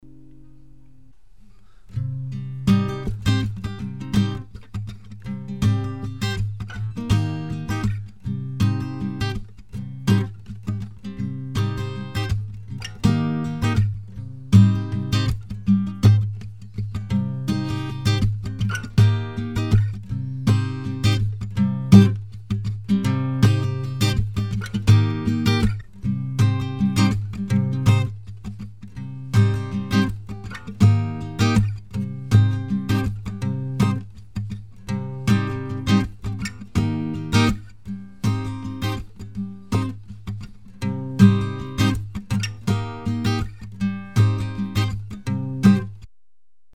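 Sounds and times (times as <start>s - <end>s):
guitar: 0.0s - 46.1s.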